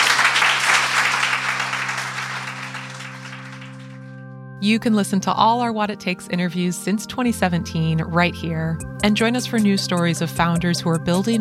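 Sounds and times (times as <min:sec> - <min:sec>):
audience applause: 0:00.0 - 0:04.1
speech: 0:04.6 - 0:11.4.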